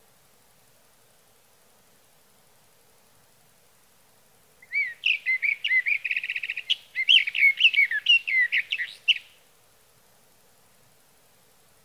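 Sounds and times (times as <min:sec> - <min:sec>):
sage thrasher whistled song: 0:04.6 - 0:09.3.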